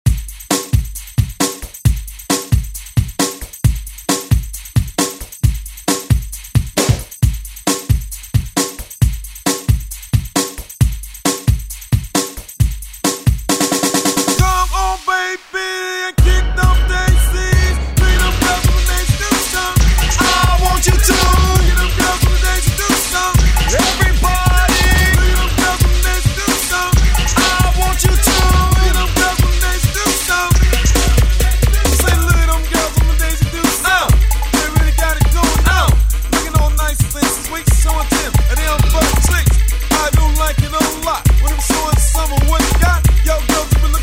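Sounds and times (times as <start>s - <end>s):
90s drum beat: 0.0s - 15.4s, 16.2s - 44.0s.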